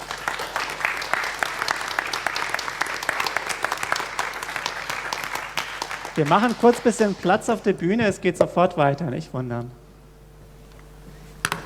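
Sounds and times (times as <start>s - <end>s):
audience applause: 0.0s - 7.6s
speech: 6.2s - 9.8s.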